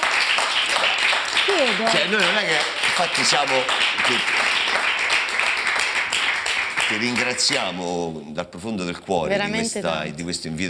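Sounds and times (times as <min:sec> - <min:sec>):
television programme audience applause: 0:00.0 - 0:08.2
speech: 0:01.6 - 0:04.8, 0:06.9 - 0:10.6.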